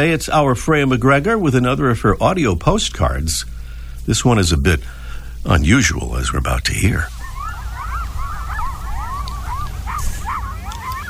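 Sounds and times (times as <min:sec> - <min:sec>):
speech: 0:00.0 - 0:07.2
pack of coyotes howling: 0:07.0 - 0:11.0.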